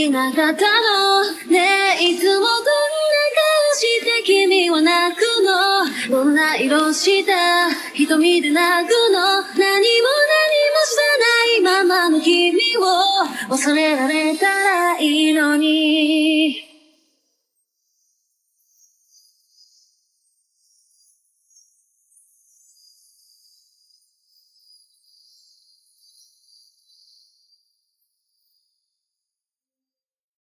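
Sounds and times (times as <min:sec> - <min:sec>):
vocals: 0:00.0 - 0:17.1.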